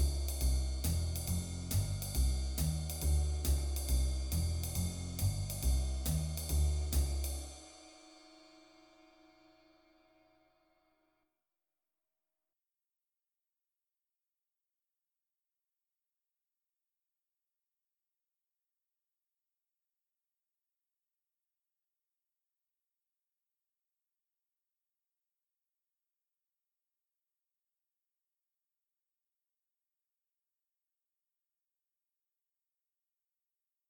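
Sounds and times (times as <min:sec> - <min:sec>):
swing beat: 0:00.0 - 0:07.8.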